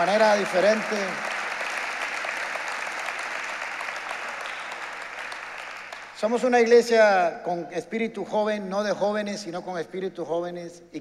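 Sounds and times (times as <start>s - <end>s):
speech: 0.0s - 1.3s, 6.2s - 10.9s
audience applause in church: 0.0s - 6.2s.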